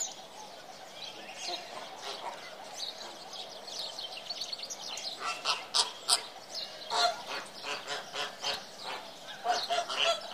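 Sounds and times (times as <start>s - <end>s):
birds chirping and trilling: 0.0s - 10.3s.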